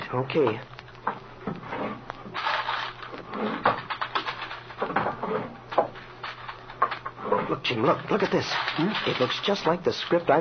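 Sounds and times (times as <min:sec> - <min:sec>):
clicks and knocks: 0:00.0 - 0:10.3
paper rustling: 0:00.0 - 0:10.4
speech: 0:00.1 - 0:01.2, 0:07.5 - 0:10.4
wooden desk drawers sliding and thumping: 0:01.5 - 0:06.0.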